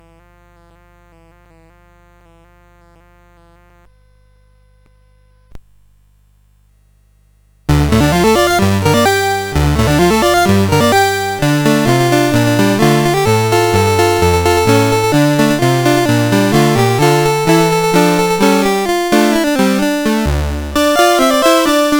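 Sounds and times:
CSG8580R5 sound chip music: 0:07.7 - 0:21.9.

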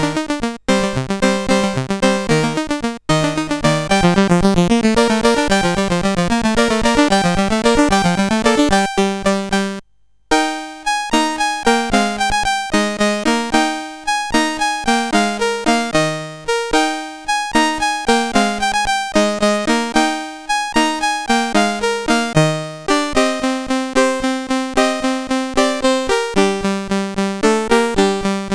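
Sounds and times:
chiptune game music on a SID CSG8580R5 chip: 0:00.0 - 0:28.5.

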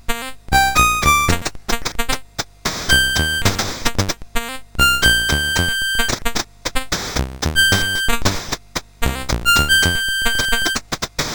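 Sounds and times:
CSG8580R5 chip music: 0:00.5 - 0:01.6, 0:02.9 - 0:04.2, 0:04.8 - 0:06.3, 0:06.9 - 0:10.8.

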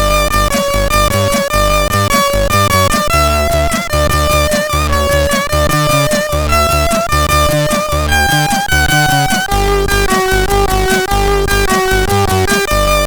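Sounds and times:
chiptune music on a MOS6581R3 sound chip: 0:00.0 - 0:13.0.

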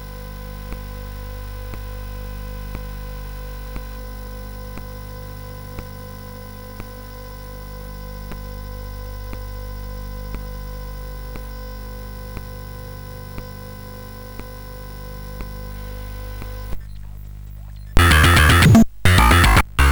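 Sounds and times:
microtuned SID chip music on CSG 8580R5: 0:18.0 - 0:19.9.

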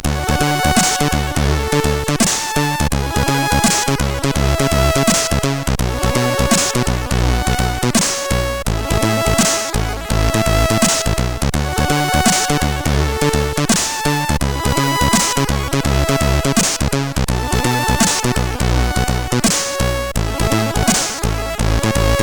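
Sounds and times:
CSG8580R5 chip music: 0:00.0 - 0:22.2.

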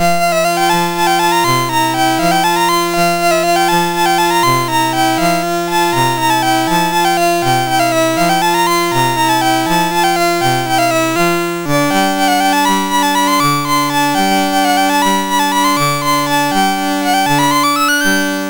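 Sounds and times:
allegro on a MOS6581R3 sound chip: 0:00.0 - 0:18.4.

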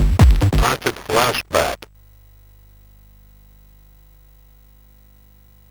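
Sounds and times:
acid music on a CSG8580R5 SID chip: 0:00.2 - 0:01.9.

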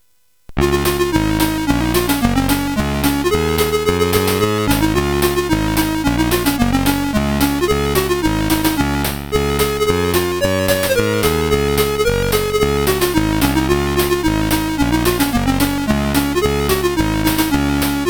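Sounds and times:
SID CSG8580R5 chip game music: 0:00.6 - 0:18.0.

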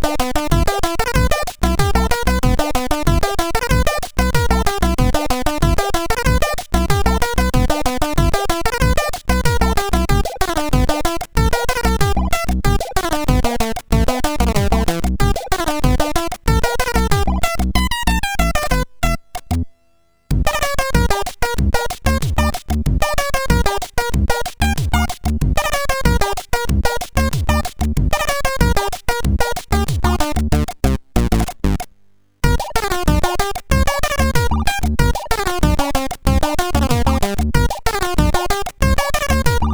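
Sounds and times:
jazz music on a MOS6581 sound chip: 0:00.0 - 0:19.7, 0:20.3 - 0:39.7.

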